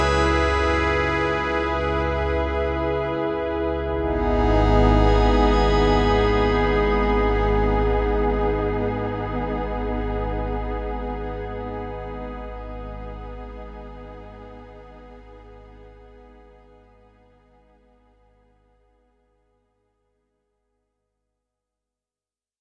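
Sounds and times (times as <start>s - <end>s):
wavetable synth pad: 0.0s - 18.6s.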